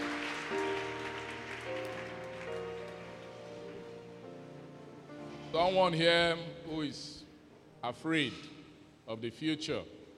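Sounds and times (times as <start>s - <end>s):
audience clapping: 0.0s - 3.7s
speech: 5.5s - 7.2s, 7.8s - 10.0s.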